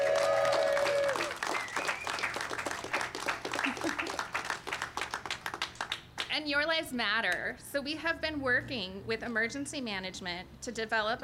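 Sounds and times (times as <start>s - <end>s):
audience applause: 0.0s - 6.2s
speech: 6.4s - 11.2s.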